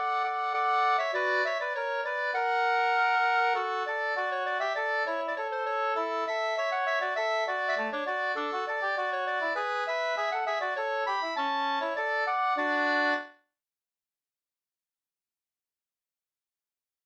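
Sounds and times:
polka music: 0.0s - 13.4s.

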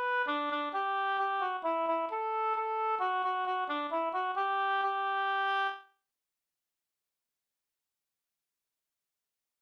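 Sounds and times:
mazurka: 0.0s - 5.7s.

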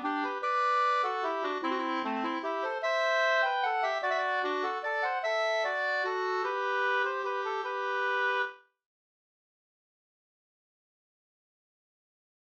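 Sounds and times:
waltz music: 0.0s - 8.5s.

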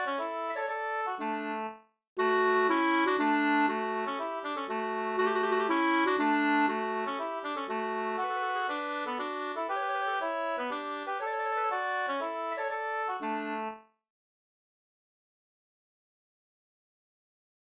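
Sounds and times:
slängpolska folk dance tune: 0.0s - 13.8s.

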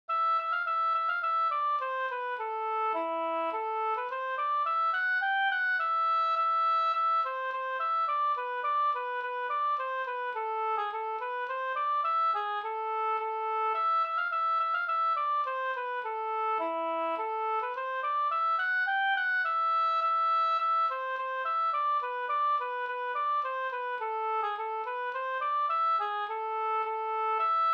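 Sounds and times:
slangpolska folk dance tune: 0.1s - 27.7s.

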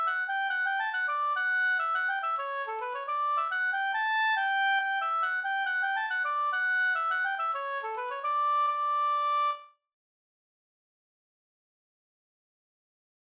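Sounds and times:
mazurka: 0.0s - 9.6s.

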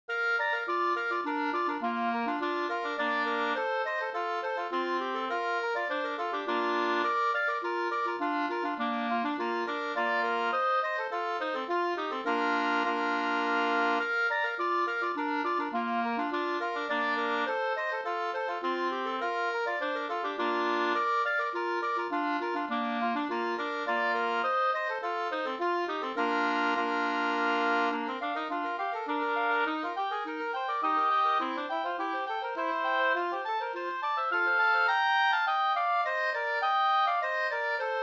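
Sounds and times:
Swedish polska folk dance music: 0.5s - 38.0s.

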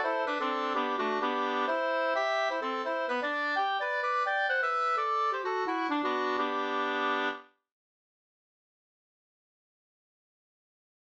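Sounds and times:
two-part polska dance tune: 0.0s - 7.4s.

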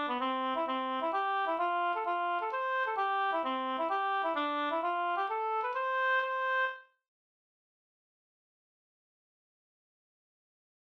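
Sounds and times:
hambo polka music: 0.0s - 6.8s.

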